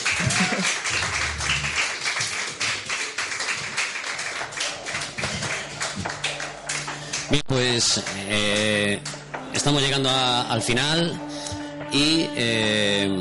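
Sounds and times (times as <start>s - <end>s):
audience applause: 0.0s - 7.4s
speech: 7.3s - 11.3s, 11.9s - 13.1s.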